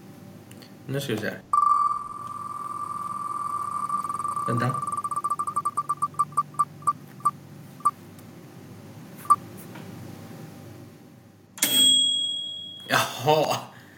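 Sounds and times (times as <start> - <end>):
speech: 0.9 - 1.6, 4.5 - 4.9
steady tone: 1.5 - 7.3
microwave oven beeping: 1.5 - 8.0, 11.6 - 12.9.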